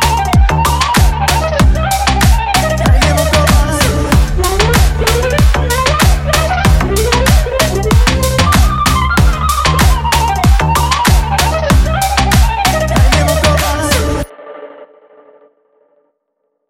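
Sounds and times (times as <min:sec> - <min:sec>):
bass: 0:00.0 - 0:14.3.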